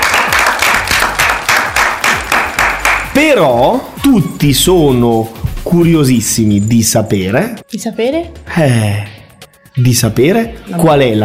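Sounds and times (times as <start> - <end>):
audience applause: 0.0 - 3.0
speech: 3.2 - 9.1, 9.8 - 11.2.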